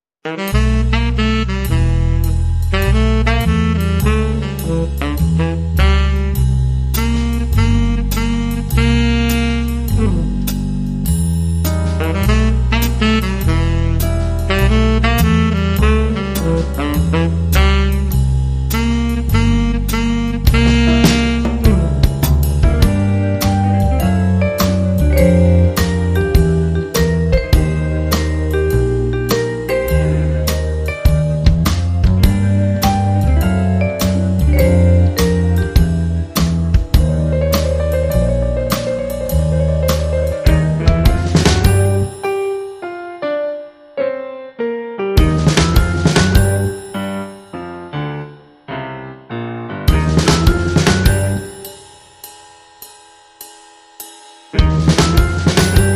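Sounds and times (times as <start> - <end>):
mystery horn: 0.2 - 42.7, 45.2 - 47.5, 49.9 - 52.0, 54.5 - 55.9.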